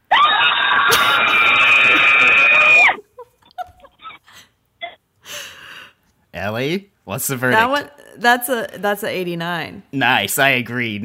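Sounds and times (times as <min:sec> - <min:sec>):
scream: 0:00.0 - 0:03.0
speech: 0:06.6 - 0:11.0.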